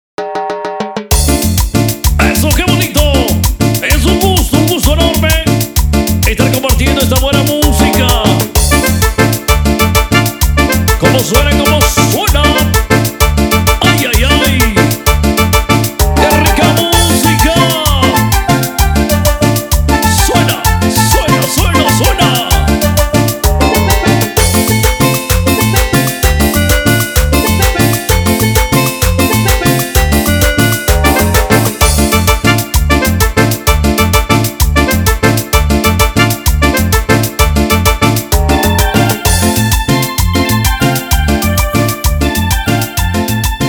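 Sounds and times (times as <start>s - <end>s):
instrumental chichero music: 0.2s - 43.6s.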